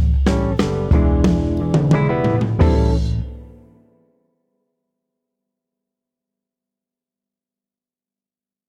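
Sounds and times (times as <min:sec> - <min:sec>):
blues groove: 0:00.0 - 0:03.8.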